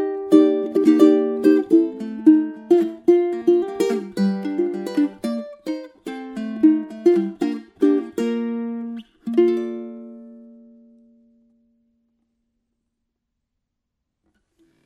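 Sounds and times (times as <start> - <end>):
Cocobolo baritone ukulele rhythm: 0.0 - 11.7.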